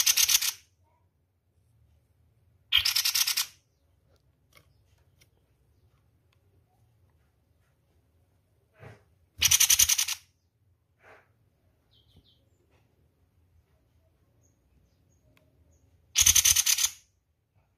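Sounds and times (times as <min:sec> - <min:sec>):
spiderhunter harsh rattling bursts of rapid pulses: 0:00.0 - 0:00.6, 0:02.7 - 0:03.6, 0:09.4 - 0:10.2, 0:16.1 - 0:17.0.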